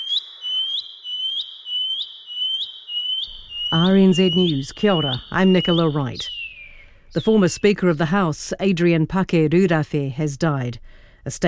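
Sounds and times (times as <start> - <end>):
shining cuckoo call: 0.0 - 7.8
speech: 3.7 - 6.4, 7.1 - 11.4.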